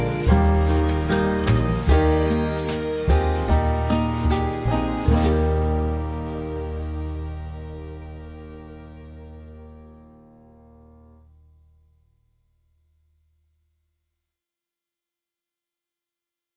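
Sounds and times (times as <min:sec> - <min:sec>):
brass instrument playing an F major scale: 0:00.0 - 0:11.2.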